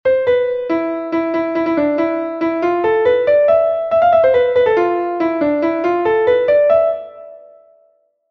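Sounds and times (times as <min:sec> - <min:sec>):
melody: 0:00.1 - 0:07.8.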